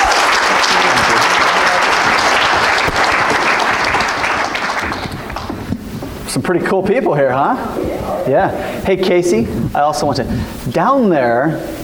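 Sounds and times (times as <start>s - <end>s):
audience applause: 0.0s - 5.8s
speech: 6.3s - 11.8s.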